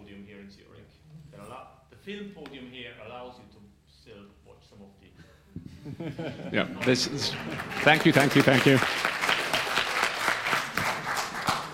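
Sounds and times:
speech: 1.4 - 9.1
laughter: 5.6 - 8.8
audience applause: 6.6 - 11.7.

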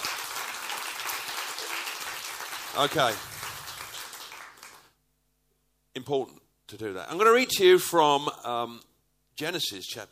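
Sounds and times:
audience clapping: 0.0 - 5.0
speech: 2.8 - 3.3, 6.0 - 10.1.

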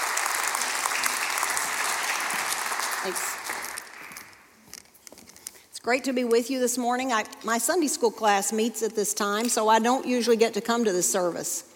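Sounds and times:
audience applause: 0.0 - 4.4
speech: 3.0 - 3.4, 5.8 - 11.7.

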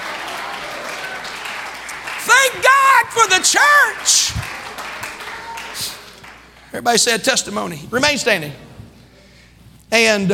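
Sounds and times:
audience clapping hands: 0.0 - 7.2
speech: 2.4 - 4.7, 6.7 - 8.6, 9.9 - 10.3.

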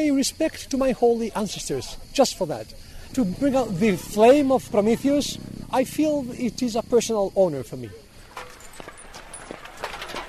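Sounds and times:
speech: 0.0 - 8.0
metal spears and shields clanking as runners move down a highway: 8.3 - 10.2.

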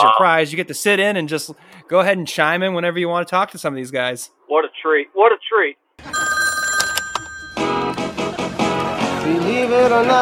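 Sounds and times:
speech: 0.1 - 6.3, 9.3 - 10.2
telephone ringing: 6.0 - 8.2.

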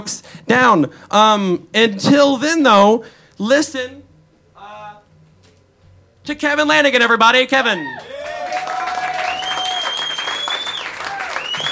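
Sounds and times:
speech: 0.0 - 4.0, 6.3 - 8.1
audience clapping: 8.0 - 11.7
long gliding whistling tones: 9.2 - 11.7.

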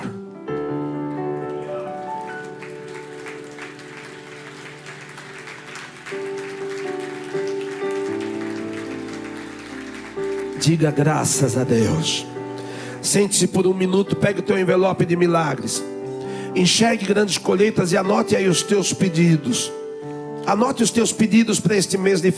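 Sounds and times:
sustained keyboard chords: 0.0 - 22.3
audience applause: 1.0 - 11.6
speech: 10.6 - 12.3, 13.1 - 16.0, 16.6 - 19.8, 20.5 - 22.3.

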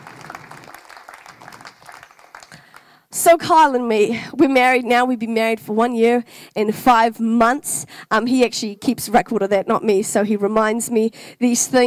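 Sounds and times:
church congregation applauding: 0.0 - 3.0
speech: 3.2 - 11.8.

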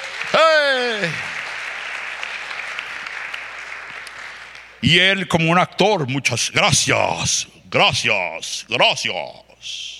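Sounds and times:
crowd applause: 0.0 - 4.8
speech: 4.8 - 9.9.

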